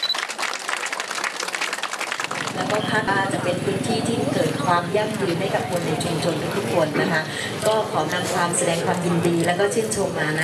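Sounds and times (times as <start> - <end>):
audience applause: 0.0 - 3.2
speech: 2.6 - 10.4.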